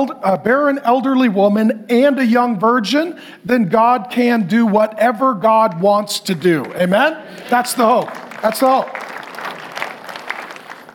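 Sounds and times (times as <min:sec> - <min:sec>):
speech: 0:00.0 - 0:09.2
light audience golf claps: 0:06.6 - 0:10.9.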